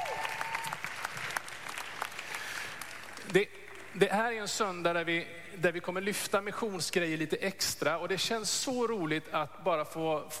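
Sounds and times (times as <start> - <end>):
audience clapping: 0.0 - 4.0
speech: 3.3 - 10.3.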